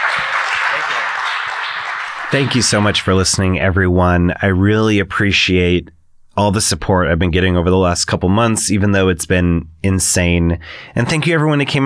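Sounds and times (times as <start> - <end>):
audience applause: 0.0 - 3.0
speech: 2.3 - 11.8.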